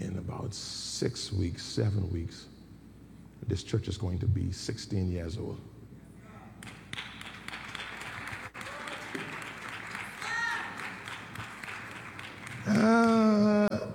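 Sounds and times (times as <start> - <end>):
speech: 0.5 - 2.5, 3.4 - 5.7
audience clapping: 6.6 - 13.4.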